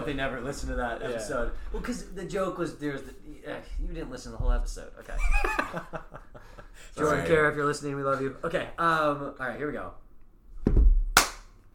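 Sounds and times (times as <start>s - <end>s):
speech: 0.0s - 10.0s
laughter: 5.1s - 7.2s
single hand clap: 11.1s - 11.6s.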